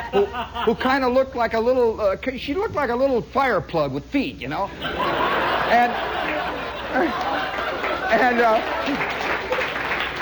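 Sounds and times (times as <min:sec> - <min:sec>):
laughter: 0:00.0 - 0:01.1, 0:04.7 - 0:10.2
speech: 0:00.1 - 0:09.3
audience applause: 0:05.0 - 0:10.2.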